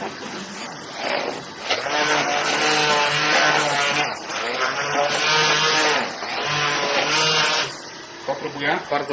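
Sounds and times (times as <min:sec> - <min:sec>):
blender mixing chocolate and gelatin: 0:00.0 - 0:08.8
speech: 0:08.7 - 0:09.1.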